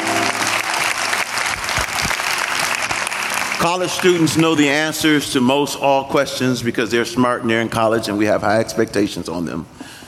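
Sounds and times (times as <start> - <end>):
audience applause: 0.0 - 4.7
speech: 3.6 - 9.9.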